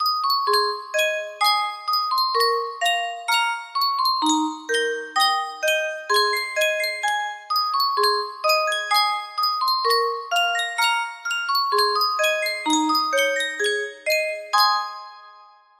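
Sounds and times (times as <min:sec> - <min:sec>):
Sankyo custom tune music box melody: 0:00.0 - 0:15.7.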